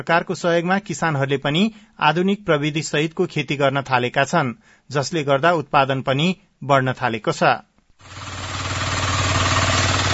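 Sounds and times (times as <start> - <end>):
speech: 0.0 - 8.3
two-wheel hand tractor engine ploughing farmland in Sisne rural municipality: 8.0 - 10.1.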